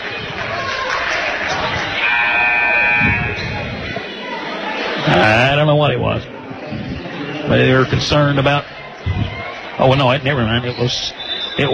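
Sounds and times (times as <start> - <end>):
steady roar of a basketball crowd: 0.0 - 11.7
voices murmuring: 0.0 - 11.7
referee's whistle blast during basketball game: 2.0 - 3.7, 11.1 - 11.7
speech: 5.3 - 6.3, 7.5 - 8.8, 9.8 - 11.7.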